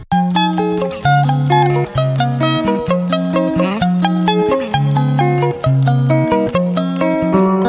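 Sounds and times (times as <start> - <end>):
string music: 0.1 - 7.5.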